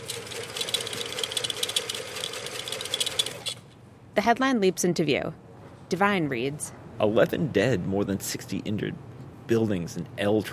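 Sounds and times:
microfilm reader winding film with whir and rattling: 0.0s - 3.6s
speech: 4.2s - 10.5s.

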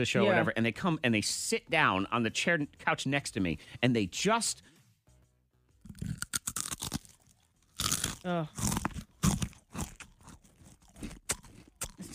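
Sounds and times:
speech: 0.0s - 4.8s, 8.2s - 8.8s
Cheez-It cracker crunching while chewing: 5.8s - 12.1s.

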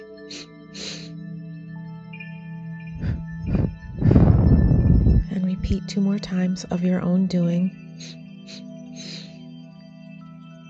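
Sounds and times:
short breaths in through the nose during a sound bath meditation: 0.0s - 1.2s, 3.0s - 4.8s, 8.0s - 9.4s
steady sustained humming tonal drone: 0.0s - 10.2s
speech: 5.7s - 8.2s.

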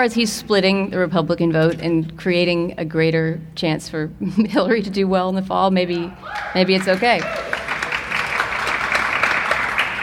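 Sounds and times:
speech: 0.0s - 7.5s
light smattering of applause from a live audience: 6.3s - 10.0s.

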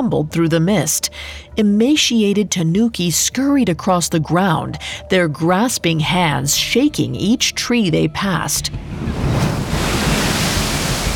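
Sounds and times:
speech: 0.0s - 10.0s
sea waves splashing: 8.7s - 11.1s.

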